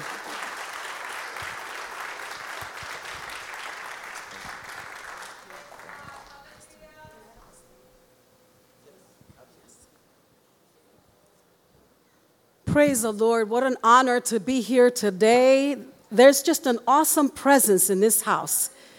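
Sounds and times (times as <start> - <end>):
crowd applause: 0.0 - 6.6
speech: 12.7 - 18.9.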